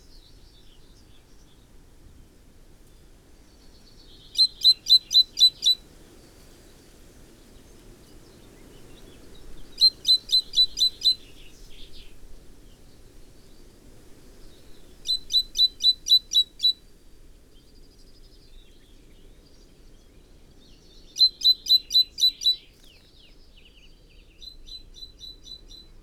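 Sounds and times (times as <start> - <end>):
Great tit calling: 4.2 - 5.8, 9.5 - 12.1, 14.5 - 16.7, 21.1 - 22.8.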